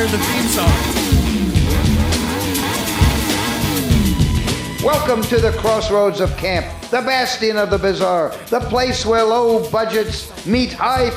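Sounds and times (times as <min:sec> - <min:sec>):
speech: 0:00.0 - 0:01.2, 0:04.8 - 0:11.1
car engine revving from a movie: 0:00.0 - 0:06.0.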